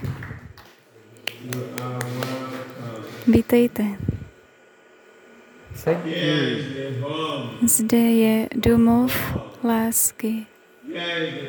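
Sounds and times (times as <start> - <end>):
audience clapping: 0.0 - 3.2
speech: 1.4 - 2.2, 3.3 - 4.1, 5.8 - 11.4.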